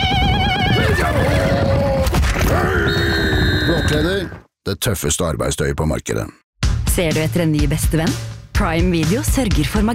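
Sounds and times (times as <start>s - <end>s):
horse neighing: 0.4s - 4.3s
speech: 3.9s - 6.4s, 7.0s - 9.9s.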